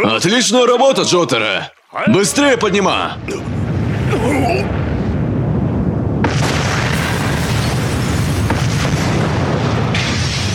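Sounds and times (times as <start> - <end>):
speech: 0.1 - 4.8
bombs exploding aboard a ship: 2.4 - 10.5.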